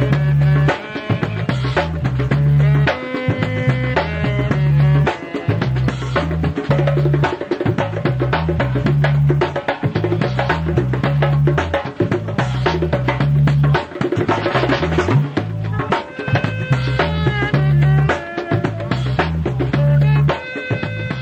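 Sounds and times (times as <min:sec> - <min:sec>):
African band playing: 0:00.0 - 0:21.2.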